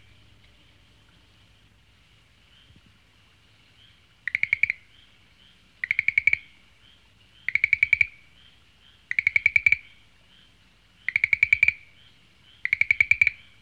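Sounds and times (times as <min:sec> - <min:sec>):
frog calling: 0:03.8 - 0:10.4, 0:11.0 - 0:13.6.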